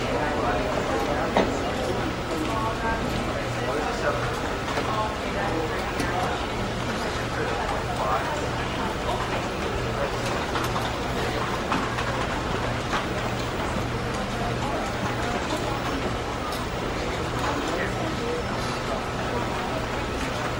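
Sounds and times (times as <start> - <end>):
office voices: 0.0 - 20.5.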